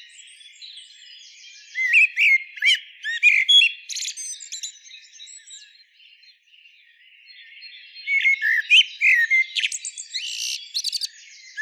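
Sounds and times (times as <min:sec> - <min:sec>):
common blackbird singing: 0:00.0 - 0:11.6.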